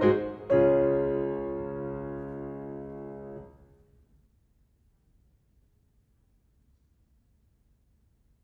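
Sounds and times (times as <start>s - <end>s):
keyboard fugue in C-sharp major: 0.0s - 3.6s.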